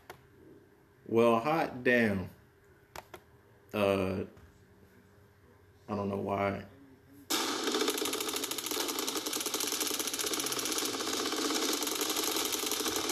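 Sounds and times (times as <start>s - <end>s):
speech: 1.1s - 2.4s, 3.7s - 4.4s, 5.9s - 6.7s
gunfire sound effect: 7.3s - 13.1s.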